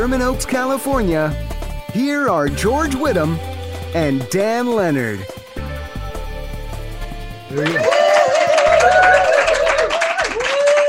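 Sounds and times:
speech: 0.0 - 5.4, 7.5 - 8.0
crowd applause: 7.5 - 10.8.

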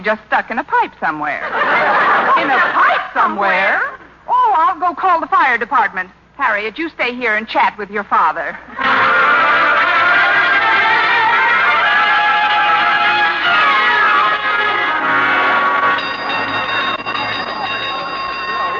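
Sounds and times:
speech: 0.0 - 4.0, 4.6 - 8.8
laughter: 1.4 - 3.5
fire drill gong ringing: 8.8 - 18.7.

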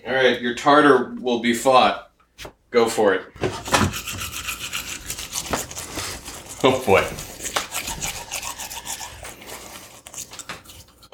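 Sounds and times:
speech: 0.0 - 3.6, 6.6 - 7.3
tongue brushed and scraped with toothbrush and Arm & Hammer baking soda toothpaste: 3.6 - 11.1.

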